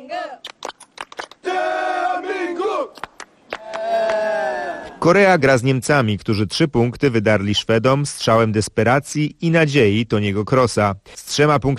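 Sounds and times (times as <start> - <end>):
football fans chanting and singing in support before match: 1.4 - 2.9
speech: 5.0 - 11.7.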